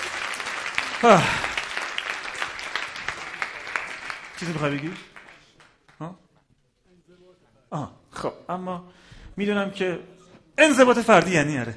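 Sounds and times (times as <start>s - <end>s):
audience applause: 0.0s - 6.0s
speech: 1.0s - 1.5s, 4.4s - 5.1s, 6.0s - 6.2s, 7.7s - 11.7s.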